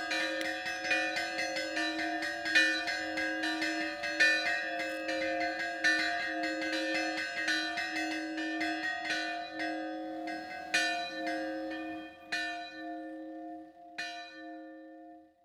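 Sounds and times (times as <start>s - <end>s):
church bells ringing in scampanottata style: 0.0s - 15.3s.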